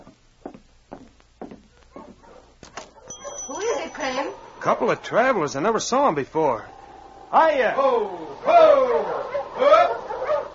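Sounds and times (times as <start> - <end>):
sled dog team approaching: 3.2 - 10.5
speech: 4.0 - 9.9.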